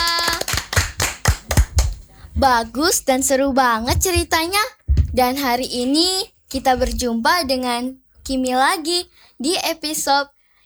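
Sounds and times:
hands clapping in applause: 0.0 - 2.1
speech: 2.4 - 10.4.

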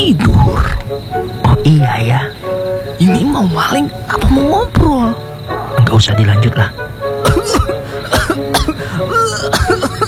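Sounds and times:
speech: 0.0 - 2.4, 3.0 - 5.3, 5.9 - 6.8
person coughing: 7.2 - 10.0.

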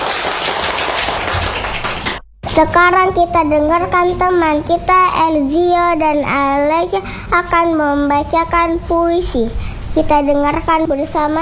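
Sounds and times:
crowd applauding: 0.0 - 2.2
speech: 2.6 - 11.4.

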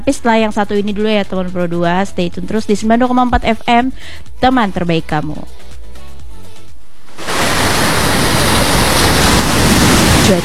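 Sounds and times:
speech: 0.0 - 5.7
surf breaking on a beach: 7.1 - 10.4.

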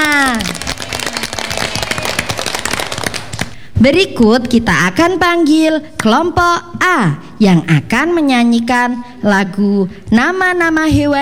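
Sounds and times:
audience applause: 0.0 - 3.6
speech: 3.8 - 11.1.

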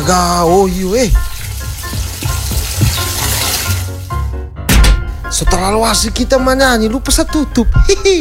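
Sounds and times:
water running from a tap: 0.0 - 4.3
speech: 0.1 - 1.3, 5.3 - 8.1.

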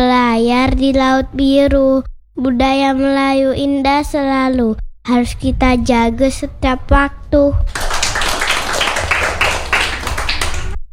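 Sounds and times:
speech: 0.6 - 7.8
group clapping hands: 7.7 - 10.8.

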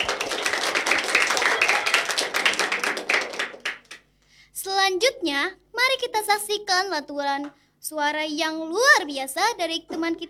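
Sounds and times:
audience applause: 0.0 - 4.0
speech: 5.0 - 10.2.

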